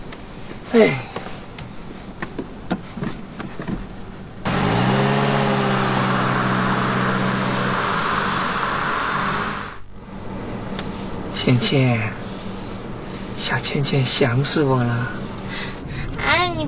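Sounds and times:
speech: 0.7 - 1.1, 11.5 - 12.2, 13.4 - 15.2
car engine roaring as the car pulls away: 4.2 - 16.2.

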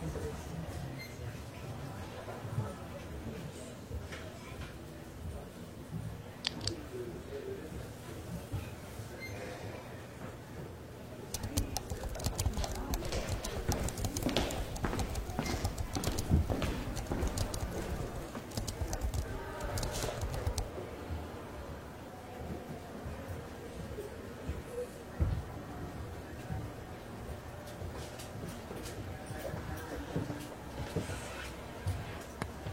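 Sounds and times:
library murmur of voices: 0.0 - 32.7
typing clicks: 11.3 - 20.7
writing and page turning rustles: 11.3 - 20.7.

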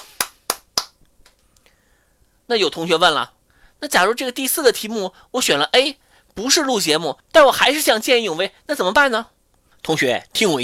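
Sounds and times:
clapping applause: 0.0 - 1.0
speech: 2.5 - 10.6.

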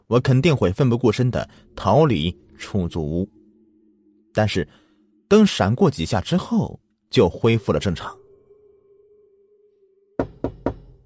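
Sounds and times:
speech: 0.1 - 3.4, 4.4 - 8.2
knocking on a door: 10.2 - 11.0.

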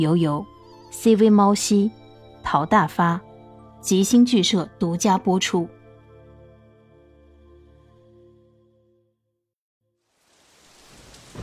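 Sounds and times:
speech: 0.0 - 5.8
rain: 10.0 - 11.4
thunder: 10.7 - 11.4.

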